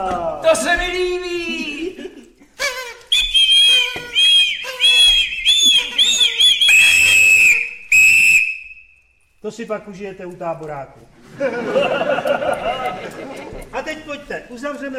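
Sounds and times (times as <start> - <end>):
speech: 0.0 - 1.7, 9.6 - 14.9
laughter: 1.6 - 3.0, 11.2 - 14.3
party blower toy being blown: 2.6 - 9.0.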